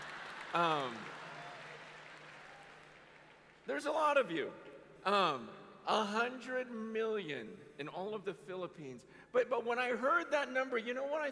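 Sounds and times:
audience clapping: 0.0s - 4.3s
speech: 0.5s - 1.2s, 3.7s - 11.3s.

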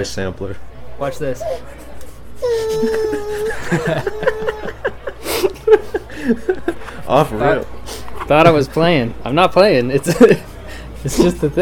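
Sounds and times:
speech: 0.0s - 1.8s, 2.4s - 4.9s, 5.7s - 11.6s
baby wailing after being put down in a pack and play: 2.4s - 5.0s
laughter: 2.4s - 7.4s, 10.0s - 11.4s.

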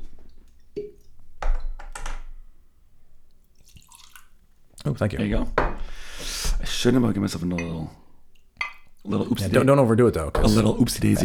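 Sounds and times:
whiskey being poured into a glass: 3.5s - 4.4s
speech: 4.8s - 5.9s, 6.8s - 8.1s, 9.0s - 11.2s
whiskey bottle clinking on glass: 8.6s - 9.0s.

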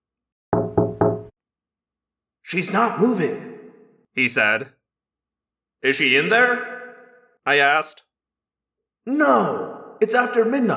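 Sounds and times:
beak tapping on a window: 0.6s - 1.3s
speech: 2.5s - 3.5s, 4.2s - 4.8s, 5.8s - 6.7s, 7.4s - 8.1s, 9.0s - 10.7s.

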